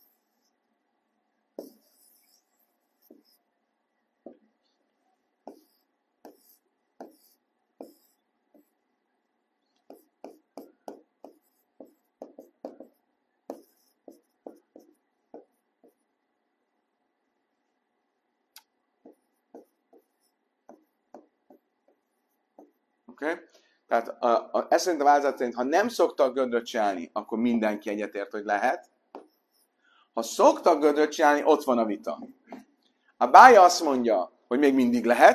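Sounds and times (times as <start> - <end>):
scratchy drawing strokes redrawing a sketched diagram: 0.0 - 0.7, 1.5 - 16.3, 19.0 - 23.0, 29.1 - 29.8
speech: 23.2 - 28.9, 30.2 - 32.4, 33.2 - 35.3.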